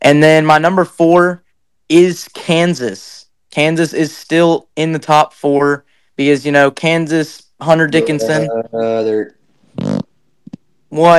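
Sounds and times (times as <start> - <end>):
speech: 0.1 - 10.0, 10.9 - 11.1
fart into the microphone: 9.7 - 10.1.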